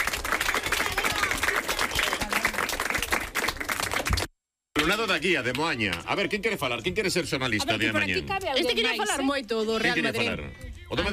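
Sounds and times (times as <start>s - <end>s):
group applause: 0.0s - 6.2s
speech: 4.9s - 11.1s.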